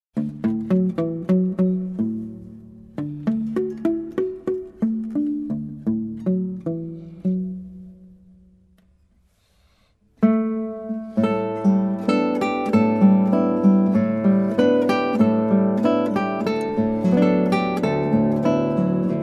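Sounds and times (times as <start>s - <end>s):
Afro-Cuban music: 0.2s - 19.2s.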